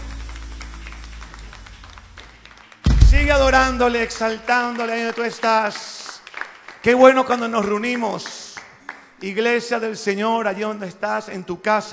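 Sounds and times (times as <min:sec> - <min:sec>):
crowd clapping in worship: 0:00.0 - 0:09.3
loud thump: 0:02.9 - 0:04.1
speech: 0:03.3 - 0:06.0, 0:06.8 - 0:08.4, 0:09.2 - 0:11.9.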